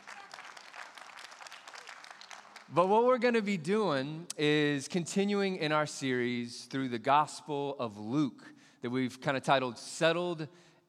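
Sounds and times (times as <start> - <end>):
light applause from a few people at a church service: 0.0 - 2.8
speech: 2.7 - 10.7.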